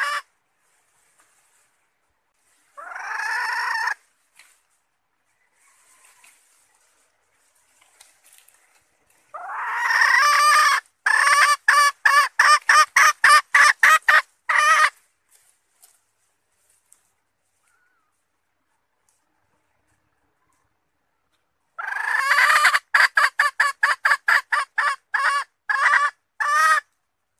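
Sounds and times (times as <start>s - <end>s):
red junglefowl hen calling: 0.0s - 0.3s, 2.6s - 4.5s, 5.3s - 15.1s, 17.5s - 18.3s, 20.1s - 27.0s.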